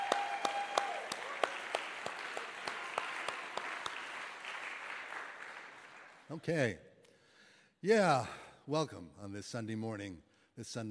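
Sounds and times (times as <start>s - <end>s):
thin scattered audience applause after a song: 0.0s - 6.4s
speech: 6.3s - 6.9s, 7.8s - 10.9s.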